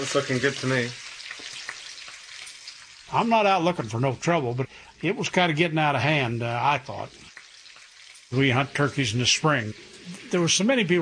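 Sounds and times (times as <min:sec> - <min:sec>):
speech: 0:00.0 - 0:01.0, 0:03.1 - 0:07.2, 0:08.3 - 0:10.9
bacon sizzling and crackling in a pan: 0:00.0 - 0:10.9.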